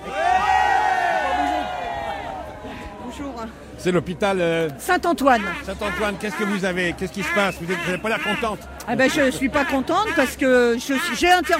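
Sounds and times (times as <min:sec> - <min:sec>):
crowd shouting at a rally to protect the public hospital: 0:00.0 - 0:03.1
speech: 0:03.8 - 0:11.5.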